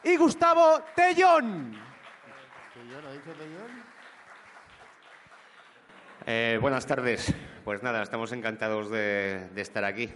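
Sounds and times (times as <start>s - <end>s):
speech: 0.0s - 1.9s, 2.8s - 4.0s, 6.2s - 10.1s
audience applause: 0.0s - 7.2s.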